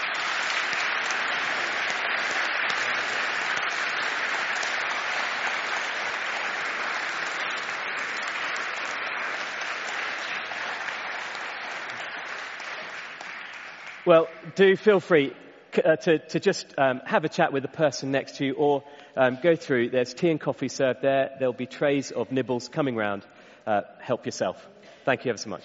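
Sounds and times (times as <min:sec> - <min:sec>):
room full of people applauding: 0:00.0 - 0:14.3
speech: 0:14.1 - 0:25.6.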